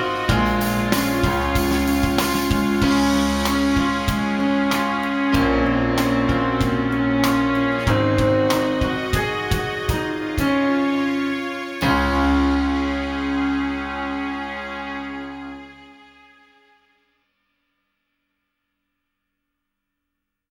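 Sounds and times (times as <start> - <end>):
refined jingle: 0.0 - 16.1.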